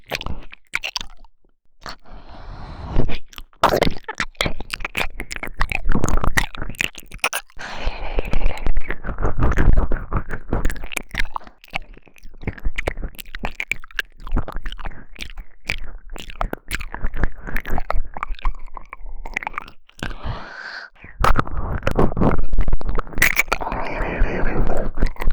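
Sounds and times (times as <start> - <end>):
ear licking in the right ear: 3.1 - 25.3.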